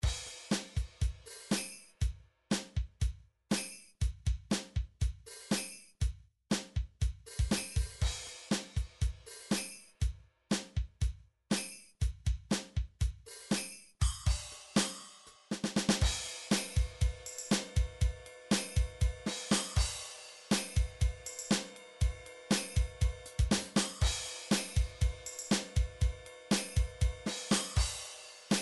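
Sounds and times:
rock MIDI drum beat: 0:00.0 - 0:03.2, 0:04.0 - 0:11.2, 0:12.0 - 0:13.2, 0:14.0 - 0:28.5.

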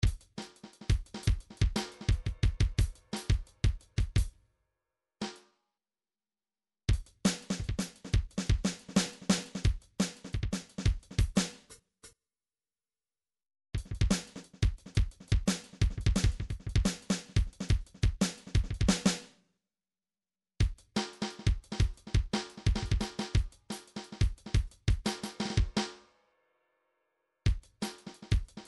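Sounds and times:
MIDI drum pattern: 0:00.0 - 0:04.3, 0:06.9 - 0:11.7, 0:13.8 - 0:19.2, 0:20.6 - 0:25.9, 0:27.5 - 0:28.6.

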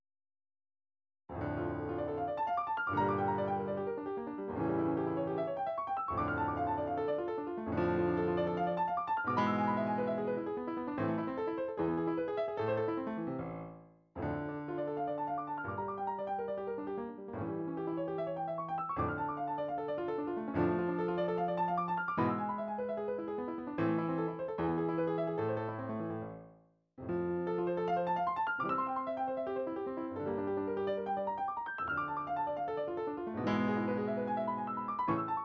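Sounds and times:
midi piano studies: 0:01.3 - 0:35.4.

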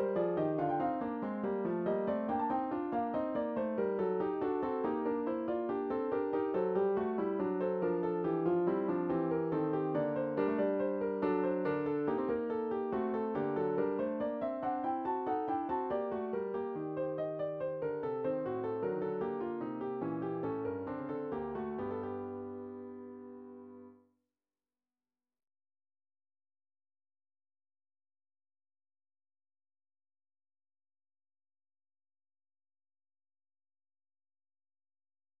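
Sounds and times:
MIDI piano: 0:00.0 - 0:24.0.

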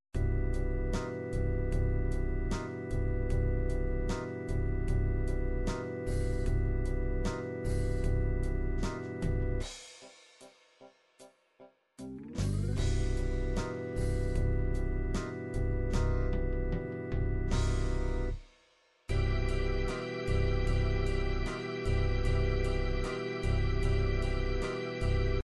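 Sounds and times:
organ ballad: 0:00.2 - 0:09.7, 0:12.0 - 0:18.4, 0:19.1 - 0:25.4.

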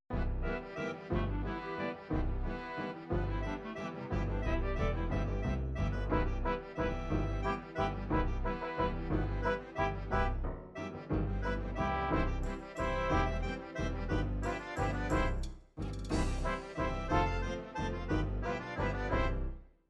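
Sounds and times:
PSR9000 MIDI waltz: 0:00.1 - 0:19.6.

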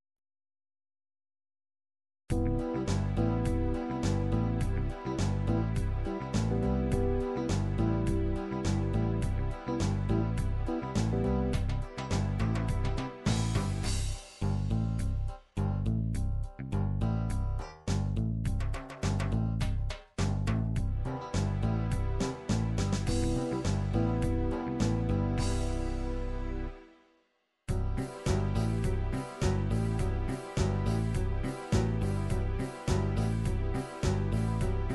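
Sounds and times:
disco party MIDI music: 0:02.3 - 0:15.4, 0:16.2 - 0:26.9, 0:27.7 - 0:34.9.

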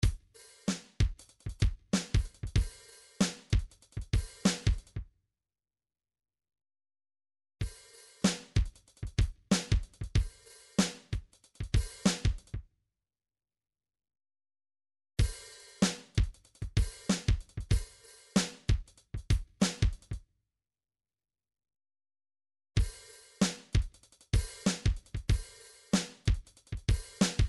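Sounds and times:
MIDI drums: 0:00.0 - 0:05.0, 0:07.6 - 0:12.6, 0:15.2 - 0:20.2, 0:22.8 - 0:27.4.

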